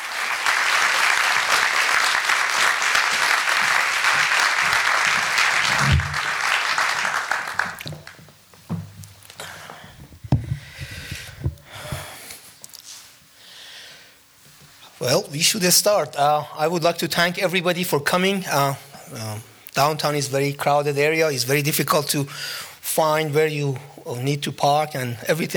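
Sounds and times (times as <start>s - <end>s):
audience applauding guest speakers at the Los Angeles Public Library: 0.0s - 8.2s
scattered claps: 0.4s - 8.3s
soft knocks and handling sounds: 7.8s - 13.3s
speech: 15.3s - 25.5s.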